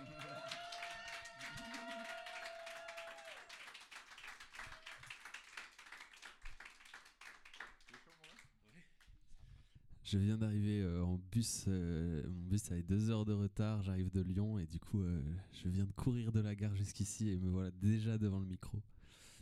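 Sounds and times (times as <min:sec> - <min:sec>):
audience applause: 0:00.0 - 0:08.4
speech: 0:10.1 - 0:18.9.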